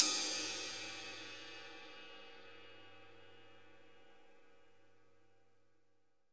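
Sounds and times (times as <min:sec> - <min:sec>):
ride cymbal of a GM drum set: 0:00.0 - 0:04.1.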